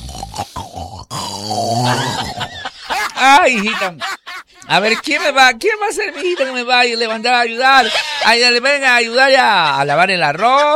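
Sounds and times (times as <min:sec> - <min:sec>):
person imitating loud snoring: 0:00.0 - 0:02.5
speech: 0:01.4 - 0:02.0, 0:03.3 - 0:04.1, 0:04.7 - 0:10.7
laughter: 0:01.8 - 0:08.6, 0:10.2 - 0:10.7.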